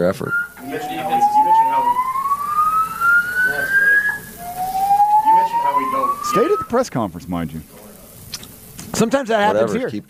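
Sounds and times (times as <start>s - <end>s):
speech: 0.0s - 1.0s, 6.3s - 7.8s, 9.0s - 10.0s
alarm sounding during post-game press conference: 0.0s - 6.8s.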